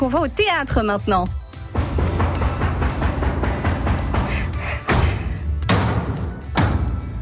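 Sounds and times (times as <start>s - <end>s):
speech: 0.0s - 1.4s
theatre knocks announcing the start of a performance: 1.8s - 6.9s.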